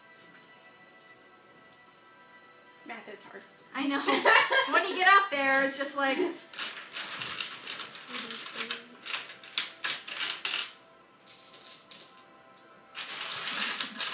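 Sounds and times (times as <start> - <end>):
speech: 3.0 - 6.6
laughter: 3.8 - 5.2
dice rolling: 6.5 - 12.2, 13.0 - 14.1.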